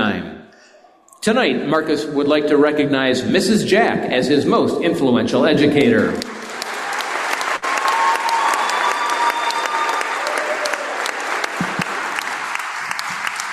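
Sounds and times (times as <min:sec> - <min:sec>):
speech: 0:01.2 - 0:06.4
crowd noise: 0:05.6 - 0:13.5
fans applauding at a high school sports event: 0:05.8 - 0:13.5.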